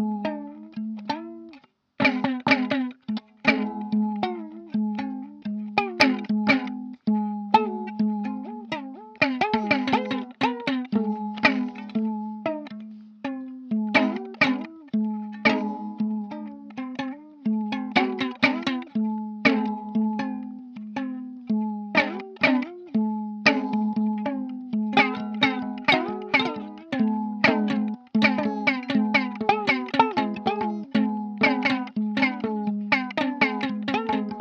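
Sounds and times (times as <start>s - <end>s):
guitar on a train: 0.0s - 34.3s.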